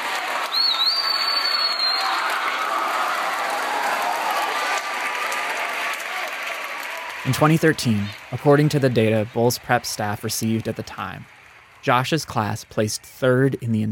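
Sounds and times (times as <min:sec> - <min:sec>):
high school students cheering and applauding at a school assembly: 0:00.0 - 0:13.9
brief high whistle: 0:00.5 - 0:02.3
speech: 0:07.3 - 0:13.9.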